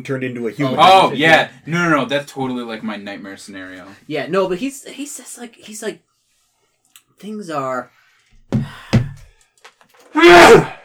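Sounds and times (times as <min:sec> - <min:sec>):
speech: 0:00.0 - 0:06.1, 0:07.2 - 0:08.9
loud sneeze: 0:10.1 - 0:10.8.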